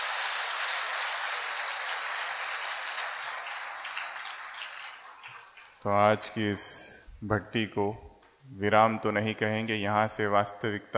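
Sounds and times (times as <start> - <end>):
audience clapping in welcome: 0.0 - 6.0
speech: 5.8 - 10.9.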